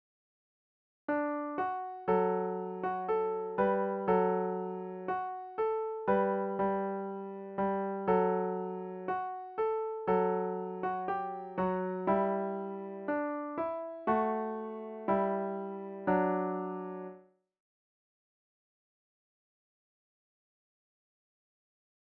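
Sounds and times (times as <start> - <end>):
piano: 1.1 - 17.3.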